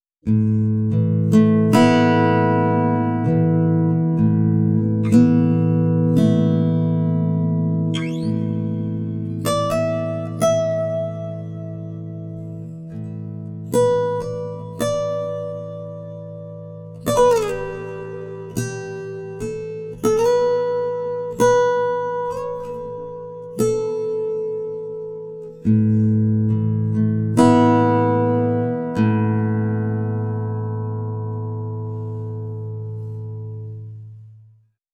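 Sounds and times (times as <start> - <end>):
time-stretched guitar: 0.2 - 34.5.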